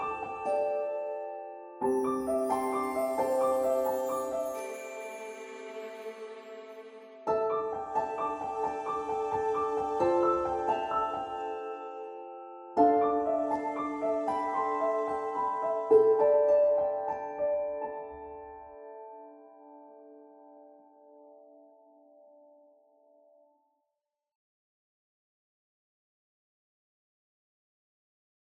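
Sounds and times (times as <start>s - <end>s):
ambient background music: 0.0s - 20.4s.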